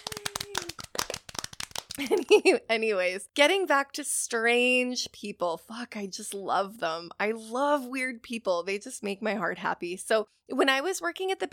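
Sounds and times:
applause sound effect: 0:00.0 - 0:02.3
speech: 0:02.0 - 0:11.5.

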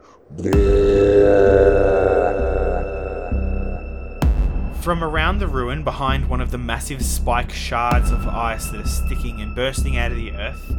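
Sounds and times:
speech: 0:00.3 - 0:01.1, 0:04.9 - 0:10.7
roar of an ice giant: 0:00.3 - 0:04.5.

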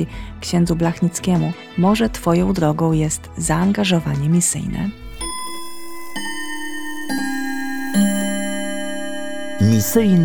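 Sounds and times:
speech: 0:00.0 - 0:05.1, 0:09.6 - 0:10.2
alarm clock ringing: 0:05.1 - 0:10.2.

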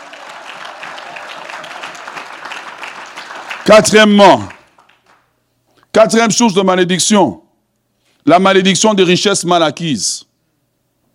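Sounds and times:
church congregation applauding in praise of the Lord: 0:00.0 - 0:05.3
speech: 0:03.7 - 0:04.6, 0:06.0 - 0:07.4, 0:08.2 - 0:10.3.

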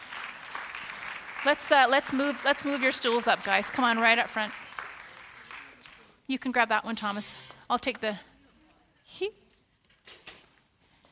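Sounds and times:
audience applause: 0:00.0 - 0:06.0
speech: 0:01.4 - 0:04.6, 0:06.3 - 0:08.3, 0:09.1 - 0:09.4.

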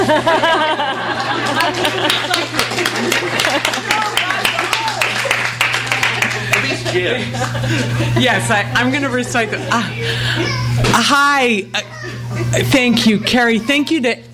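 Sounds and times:
laughter: 0:00.0 - 0:08.7, 0:11.8 - 0:13.5
speech: 0:00.1 - 0:00.9, 0:07.0 - 0:14.3
audience applause: 0:00.8 - 0:07.6.

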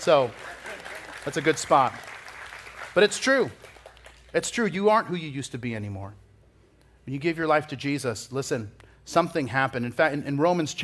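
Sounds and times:
speech: 0:00.0 - 0:00.6, 0:01.2 - 0:02.1, 0:02.9 - 0:03.7, 0:04.3 - 0:06.2, 0:07.1 - 0:10.8
audience clapping: 0:00.0 - 0:04.7.

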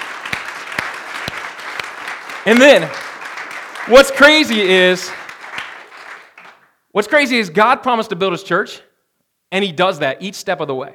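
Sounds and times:
audience applause: 0:00.0 - 0:06.7
speech: 0:02.4 - 0:03.0, 0:03.9 - 0:05.2, 0:07.0 - 0:08.9, 0:09.5 - 0:10.9.

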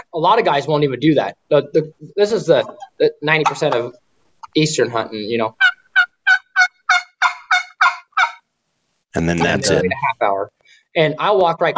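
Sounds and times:
speech: 0:00.2 - 0:05.7, 0:09.2 - 0:11.7
turkey yelping: 0:05.5 - 0:08.4.

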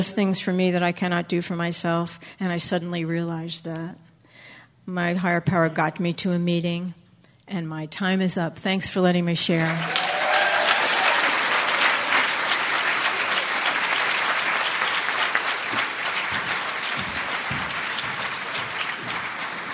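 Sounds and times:
speech: 0:00.0 - 0:04.0, 0:04.8 - 0:10.0
audience applause: 0:09.7 - 0:19.7.

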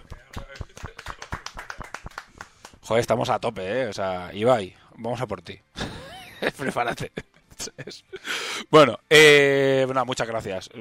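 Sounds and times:
audience applause: 0:00.0 - 0:02.8
speech: 0:02.9 - 0:05.7, 0:06.4 - 0:10.7
laughter: 0:05.8 - 0:08.1.

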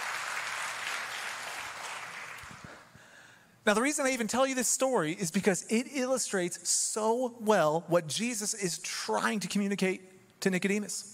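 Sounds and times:
audience clapping: 0:00.0 - 0:02.9
speech: 0:03.6 - 0:11.1.

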